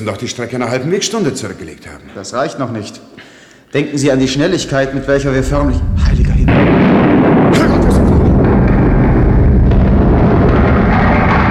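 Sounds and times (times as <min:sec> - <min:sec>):
speech: 0:00.0 - 0:06.2
thunderous underground explosion: 0:04.0 - 0:11.5.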